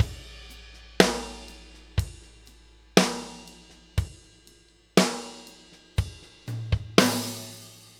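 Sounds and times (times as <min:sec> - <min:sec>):
laidback New York drum loop: 0:00.0 - 0:07.9.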